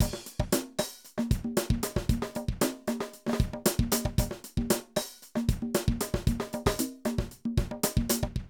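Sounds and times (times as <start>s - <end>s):
70s funk drum loops: 0.0s - 8.4s.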